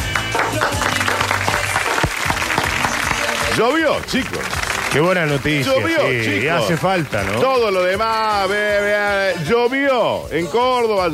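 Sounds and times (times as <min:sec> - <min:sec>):
small group clapping: 0:00.0 - 0:08.9
speech: 0:03.6 - 0:11.1.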